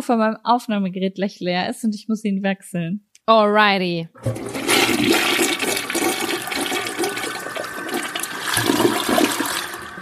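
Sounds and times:
speech: 0.0s - 5.3s
toilet flushing: 4.2s - 10.0s.

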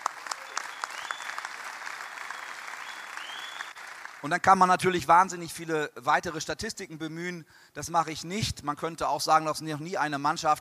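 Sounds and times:
audience applause: 0.0s - 4.3s
speech: 4.2s - 10.5s.

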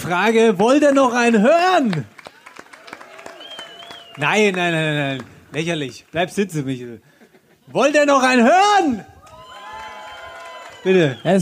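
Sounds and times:
speech: 0.0s - 2.2s, 4.2s - 7.1s, 7.7s - 9.1s, 10.8s - 11.4s
cheering voices: 0.7s - 5.9s, 7.8s - 11.4s
audience applause: 0.7s - 6.1s, 9.2s - 11.4s
rising whoops: 2.3s - 4.1s, 9.2s - 11.3s.

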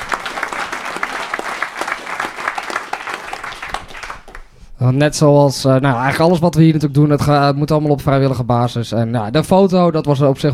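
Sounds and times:
audience applauding: 0.0s - 4.6s
speech: 4.8s - 10.5s.

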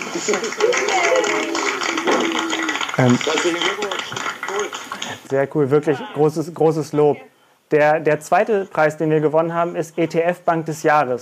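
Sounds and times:
audience applause: 0.0s - 5.3s
speech: 0.2s - 11.1s.

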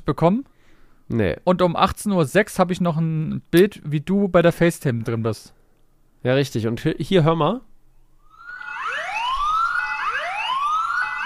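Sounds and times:
speech: 0.1s - 0.5s, 1.1s - 5.6s, 6.2s - 7.7s
alarm siren wailing: 8.2s - 11.2s.

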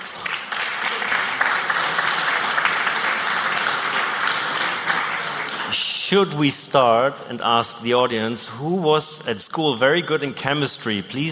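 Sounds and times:
audience applause: 0.0s - 5.8s
speech: 6.1s - 11.2s.

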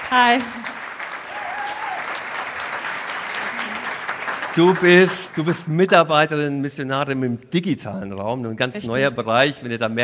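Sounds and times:
audience applause: 0.0s - 6.5s
speech: 0.1s - 0.7s, 4.6s - 10.0s.

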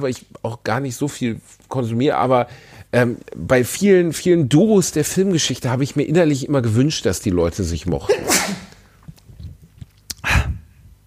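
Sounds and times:
speech: 0.0s - 8.5s
person sneezing with headset taken off: 8.0s - 8.8s.

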